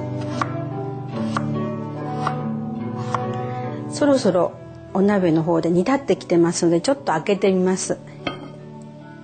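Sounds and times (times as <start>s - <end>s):
knife slicing taro into half-moons: 0.1s - 3.4s
speech: 4.0s - 8.1s.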